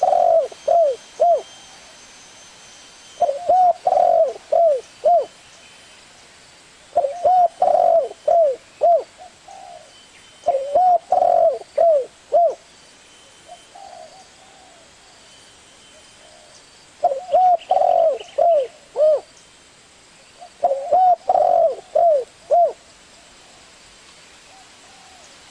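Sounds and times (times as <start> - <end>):
Spotted Dove cooing: 0.0 - 1.9, 3.2 - 5.4, 6.9 - 12.6, 13.5 - 15.0, 16.2 - 19.3, 20.4 - 22.8, 24.5 - 25.3.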